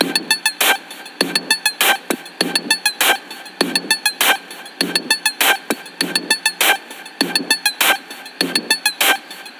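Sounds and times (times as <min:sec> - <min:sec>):
percussion scanner sounds: 0:00.0 - 0:09.5.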